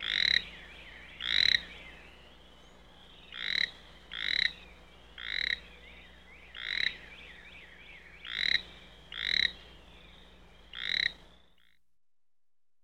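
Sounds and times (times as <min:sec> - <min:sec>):
American toad giving a steady musical trill: 0:00.0 - 0:00.5, 0:01.2 - 0:01.7, 0:03.3 - 0:04.6, 0:05.2 - 0:05.6, 0:06.6 - 0:07.0, 0:08.2 - 0:09.6, 0:10.7 - 0:11.2.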